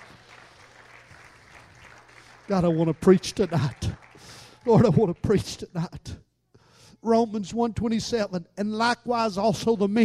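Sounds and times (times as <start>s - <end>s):
audience clapping hands: 0.0s - 5.6s
speech: 2.5s - 4.0s, 4.6s - 6.2s, 7.0s - 10.0s.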